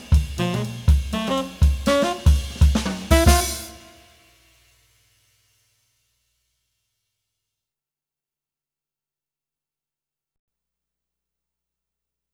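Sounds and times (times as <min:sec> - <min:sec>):
jazz trumpet: 0:00.0 - 0:04.4.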